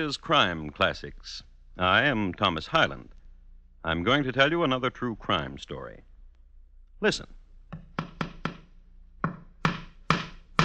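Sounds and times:
speech: 0.0s - 3.2s, 3.8s - 6.1s, 7.0s - 7.4s
man hammering a nail into a wall: 7.7s - 10.6s.

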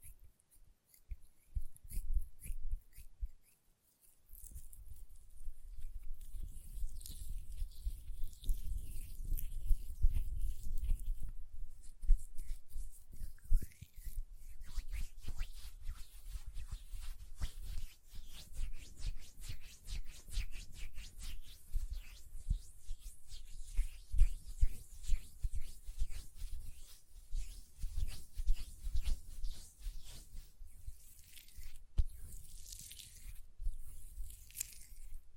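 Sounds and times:
hands rubbing lotion: 0.9s - 35.3s.

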